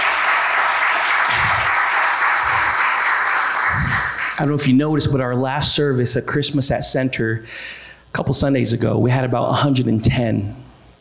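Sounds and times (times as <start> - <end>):
audience clapping: 0.0 - 4.8
speech: 4.4 - 10.6.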